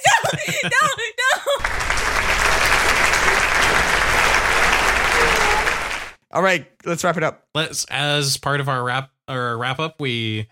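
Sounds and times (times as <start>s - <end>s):
laughter: 0.0s - 6.0s
speech: 0.6s - 1.1s, 6.4s - 10.5s
audience applause sound effect: 1.6s - 6.2s.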